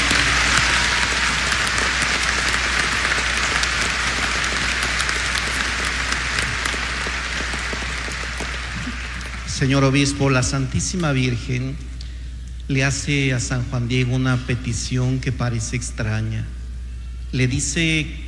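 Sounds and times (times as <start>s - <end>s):
crowd applause: 0.0s - 10.2s
speech: 9.6s - 11.9s, 12.7s - 16.6s, 17.3s - 18.2s.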